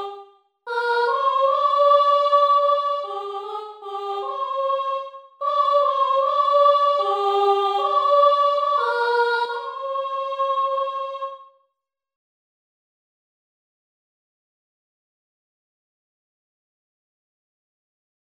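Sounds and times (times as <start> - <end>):
soprano singing: 0.0 - 11.5.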